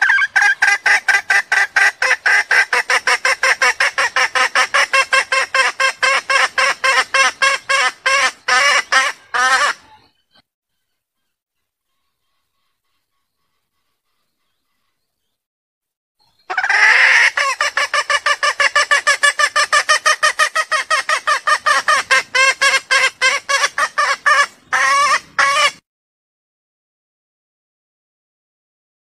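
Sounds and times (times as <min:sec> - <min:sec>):
junglefowl clucking: 0:00.0 - 0:10.1, 0:16.5 - 0:25.8.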